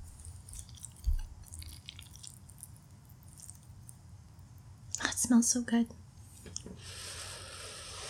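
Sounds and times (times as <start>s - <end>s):
chewing a mouthful of homemade stir fry: 0.1s - 4.0s
speech: 5.3s - 6.1s.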